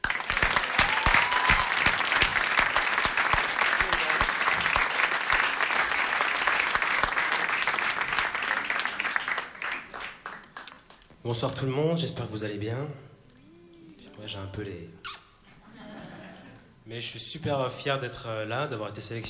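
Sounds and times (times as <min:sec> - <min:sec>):
audience applause: 0:00.0 - 0:11.0
speech: 0:11.3 - 0:13.1, 0:14.2 - 0:15.0, 0:16.9 - 0:19.2
laughter: 0:15.6 - 0:16.8.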